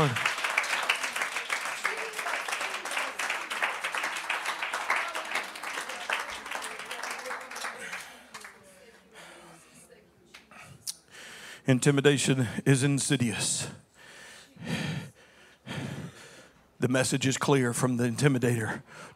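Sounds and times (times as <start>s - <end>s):
speech: 0.0s - 0.2s, 11.7s - 13.8s, 16.9s - 19.1s
audience hand clap applause: 0.0s - 9.1s.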